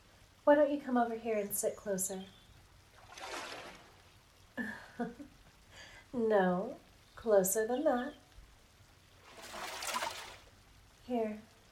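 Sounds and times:
speech: 0:00.5 - 0:02.4, 0:05.0 - 0:05.3, 0:06.1 - 0:08.2, 0:11.1 - 0:11.5
running water: 0:02.9 - 0:04.2, 0:09.2 - 0:10.6.

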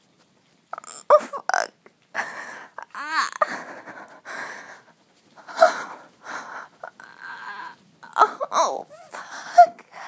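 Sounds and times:
person moaning: 0:00.8 - 0:03.7, 0:06.8 - 0:09.7.

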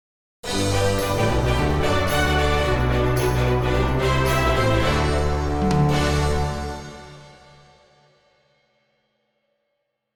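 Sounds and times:
orchestral instrumental music: 0:00.4 - 0:08.0.

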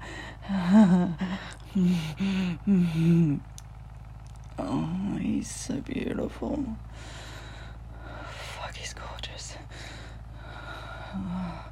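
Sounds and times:
man panting: 0:00.0 - 0:03.2, 0:06.9 - 0:08.3, 0:09.7 - 0:11.7
speech: 0:01.8 - 0:03.6, 0:04.6 - 0:07.2.

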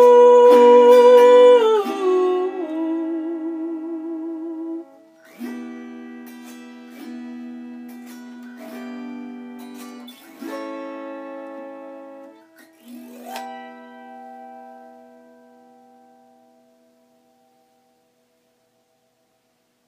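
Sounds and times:
person singing an original song: 0:00.0 - 0:05.0
autoharp: 0:00.0 - 0:18.0.

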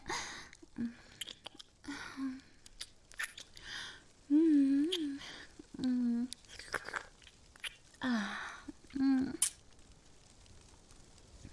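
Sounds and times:
wet chewing and smacking of someone tasting a sweet creamy food: 0:00.5 - 0:03.8, 0:04.8 - 0:09.8.

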